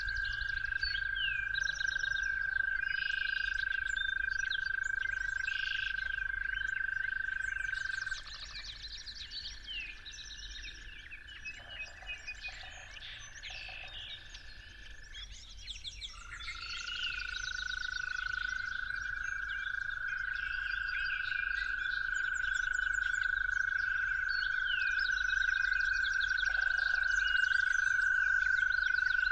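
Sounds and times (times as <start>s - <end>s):
toad trilling at dawn: 0.0s - 8.2s, 16.5s - 29.3s.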